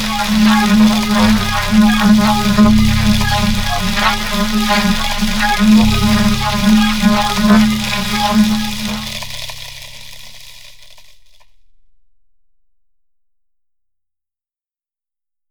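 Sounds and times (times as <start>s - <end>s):
low didgeridoo: 0.0s - 10.1s.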